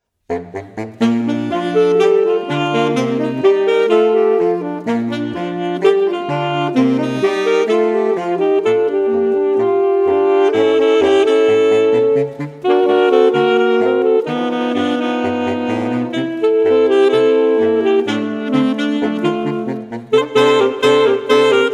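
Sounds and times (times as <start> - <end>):
saxophone quartet: 0.3 - 21.7.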